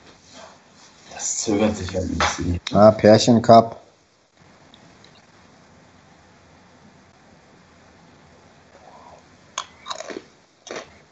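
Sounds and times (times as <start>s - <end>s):
low steady hum: 0.0s - 11.1s
speech: 1.4s - 3.8s
crunching snacks from a bag: 9.6s - 11.0s.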